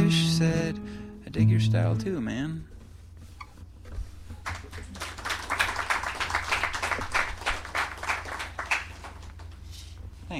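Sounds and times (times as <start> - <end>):
speech: 0.4 - 2.8
small crowd clapping: 4.4 - 9.6.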